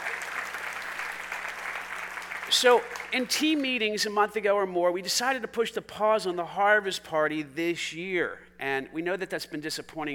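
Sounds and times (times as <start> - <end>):
audience applause: 0.0 - 3.1
speech: 2.5 - 10.1.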